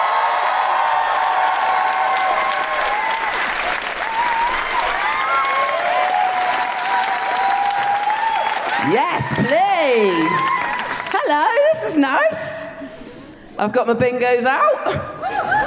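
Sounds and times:
live comedy show audience applause and cheering welcoming a comedian: 0.0s - 11.8s
speech: 8.9s - 10.5s, 11.3s - 12.7s, 13.6s - 15.1s.

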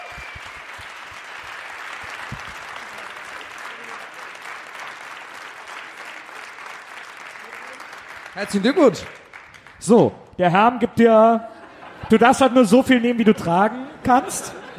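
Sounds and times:
crowd applause: 0.0s - 10.0s
speech: 8.4s - 9.2s, 9.8s - 11.5s, 12.1s - 14.7s
laughter: 11.0s - 14.7s.

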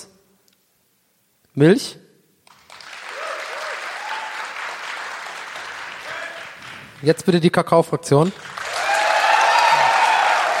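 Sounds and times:
speech: 1.6s - 2.0s, 7.0s - 8.6s
live audience applause: 2.5s - 7.2s, 8.2s - 10.5s
whoops and cheers: 3.0s - 4.6s, 8.6s - 10.5s.

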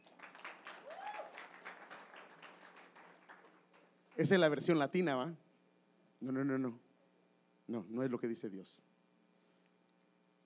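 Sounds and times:
audience applause: 0.0s - 4.2s
speech: 4.2s - 5.4s, 6.2s - 6.9s, 7.7s - 8.9s.

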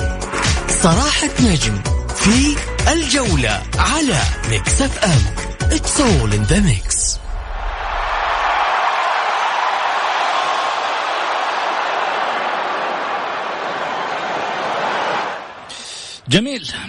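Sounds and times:
speech: 0.8s - 6.9s, 16.3s - 16.8s
stadium crowd noise: 7.2s - 16.0s.

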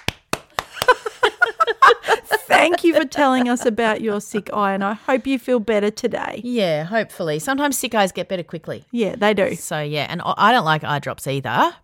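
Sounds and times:
hands clapping: 0.0s - 1.5s
laughter: 0.7s - 4.6s
speech: 1.8s - 11.8s.

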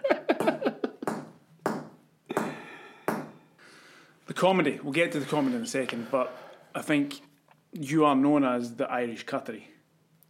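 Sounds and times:
hammering from upstairs: 0.4s - 3.4s
speech: 4.4s - 9.7s.

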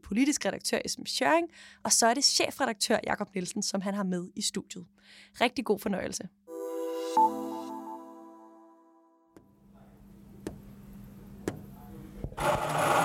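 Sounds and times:
speech: 0.1s - 6.4s, 7.2s - 7.5s
coffee machine running: 12.4s - 13.0s.

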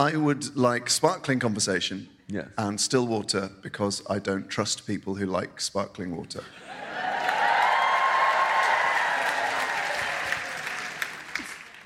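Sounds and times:
speech: 0.0s - 6.9s
audience clapping: 6.9s - 11.8s.

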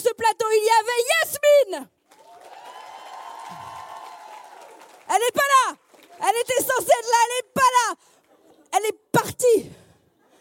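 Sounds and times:
speech: 0.0s - 2.0s, 5.1s - 8.1s, 8.7s - 9.8s
audience clapping for the crew of a live evening show: 2.0s - 6.4s.

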